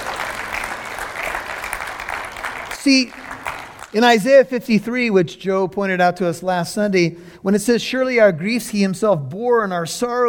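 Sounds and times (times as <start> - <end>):
crowd clapping: 0.0 - 4.2
speech: 2.8 - 3.2, 3.9 - 10.2.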